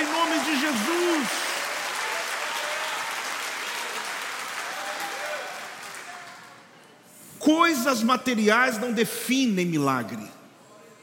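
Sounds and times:
audience applauding: 0.0s - 6.7s
speech: 7.5s - 10.4s.

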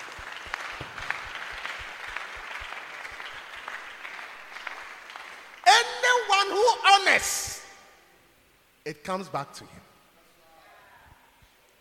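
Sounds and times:
audience clapping: 0.0s - 7.0s
speech: 6.4s - 7.5s, 8.9s - 9.9s.

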